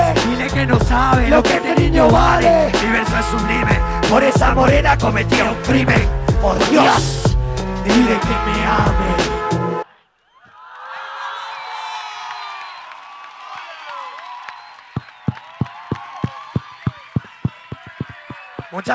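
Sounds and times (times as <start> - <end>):
speech: 0.6 - 7.2, 7.8 - 9.4, 18.8 - 18.9
audience cheering and whooping: 10.0 - 18.9
rhythmic clapping in unison: 14.4 - 18.9.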